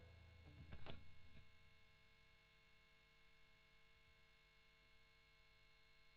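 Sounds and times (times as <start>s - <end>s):
overdriven electric guitar: 0.0s - 1.4s.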